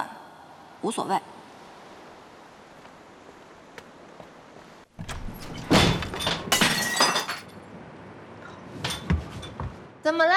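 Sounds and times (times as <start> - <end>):
speech: 0.8 - 1.4, 10.1 - 10.3
pane of glass falling and shattering: 5.4 - 7.6
glass shards tinkling: 6.5 - 7.5.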